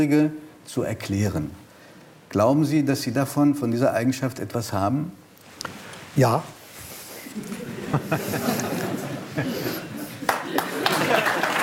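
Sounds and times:
speech: 0:00.0 - 0:01.6, 0:02.3 - 0:06.6, 0:07.4 - 0:08.8, 0:09.4 - 0:09.9
laughter: 0:07.3 - 0:11.6
hesitant clapping from a small group: 0:10.2 - 0:11.6.

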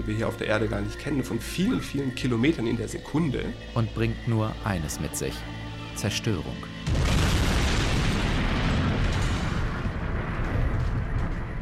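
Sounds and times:
speech: 0:00.0 - 0:07.2
meteorite impact explosion: 0:06.8 - 0:11.6.

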